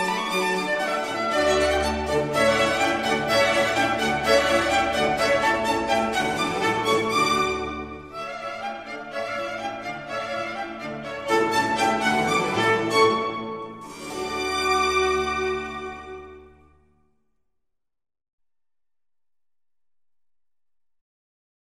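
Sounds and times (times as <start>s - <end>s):
violin concerto: 0.0s - 16.5s.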